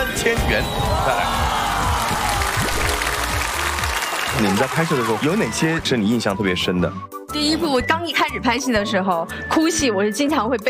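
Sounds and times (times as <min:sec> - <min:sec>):
speech: 0:00.2 - 0:01.5, 0:04.4 - 0:10.6
audience applause for two singers on a TV show: 0:00.8 - 0:05.9.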